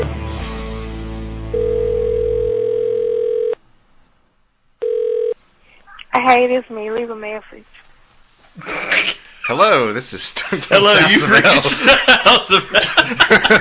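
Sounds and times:
telephone number being dialed: 0:01.6 - 0:03.6, 0:04.8 - 0:05.4
speech: 0:06.2 - 0:07.8, 0:08.6 - 0:13.5
laughter: 0:08.6 - 0:13.5.

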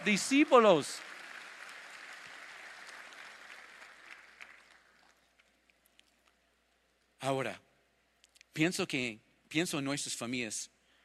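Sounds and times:
speech: 0:00.0 - 0:01.1, 0:07.2 - 0:07.6, 0:08.6 - 0:10.7
audience applause: 0:00.0 - 0:05.3.

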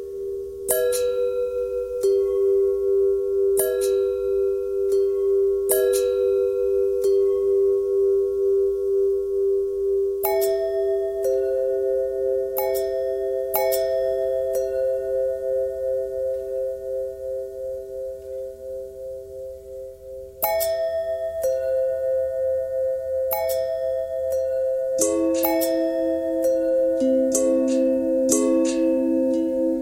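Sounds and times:
long pentatonic bell tones: 0:00.0 - 0:29.8.

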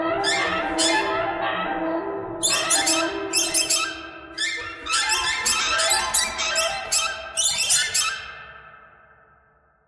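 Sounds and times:
birds squawking: 0:00.2 - 0:01.1, 0:02.4 - 0:08.4.

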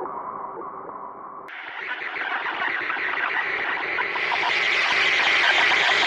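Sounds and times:
weather radio noise: 0:01.5 - 0:06.0.

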